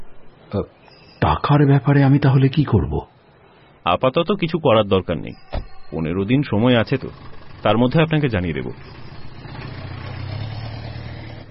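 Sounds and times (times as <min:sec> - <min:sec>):
speech: 0:00.5 - 0:03.2, 0:03.8 - 0:09.1
car engine running: 0:06.6 - 0:11.5.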